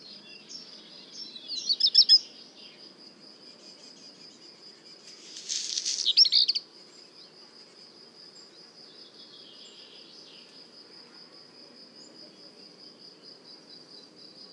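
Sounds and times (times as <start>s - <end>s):
black redstart song: 0.0s - 2.9s, 3.5s - 7.4s, 8.4s - 10.6s
insect drone: 0.0s - 14.5s.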